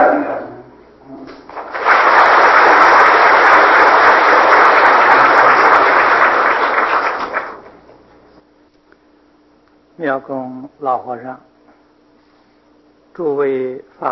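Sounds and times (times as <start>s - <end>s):
audience applause: 1.5s - 8.0s
speech: 10.0s - 11.5s, 13.2s - 14.1s.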